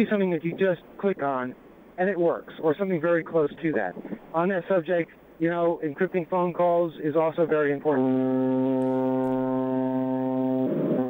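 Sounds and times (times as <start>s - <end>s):
speech: 0.0s - 9.3s
ship's horn blast: 7.6s - 11.0s.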